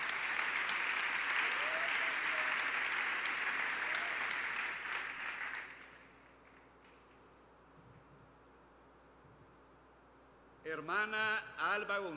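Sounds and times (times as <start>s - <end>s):
audience applause: 0.0s - 6.2s
speech: 10.7s - 12.1s.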